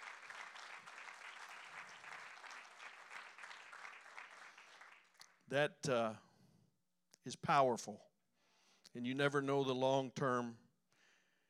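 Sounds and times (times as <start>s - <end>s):
steady sustained crowd applause: 0.0s - 5.3s
speech: 5.5s - 6.2s, 7.2s - 8.1s, 8.9s - 10.6s.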